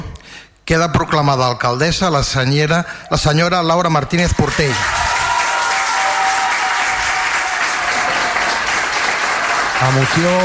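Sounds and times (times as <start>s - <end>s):
speech: 0.7s - 5.1s, 9.8s - 10.4s
applause in council chamber: 4.4s - 10.4s.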